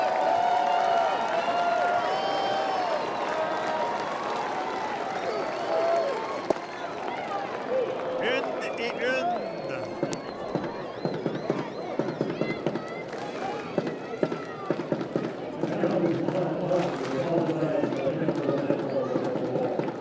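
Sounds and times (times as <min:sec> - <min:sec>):
baseball crowd roar: 0:00.0 - 0:19.9
scattered clapping: 0:00.0 - 0:19.9
whistle-like tones: 0:08.6 - 0:12.9.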